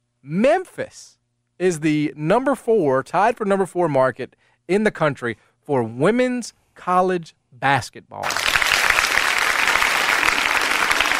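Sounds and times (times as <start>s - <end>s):
speech: 0.2s - 8.5s
applause: 8.2s - 11.1s.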